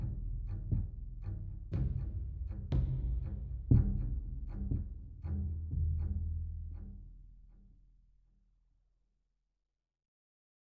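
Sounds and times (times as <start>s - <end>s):
suspense music loop: 0.0s - 7.0s.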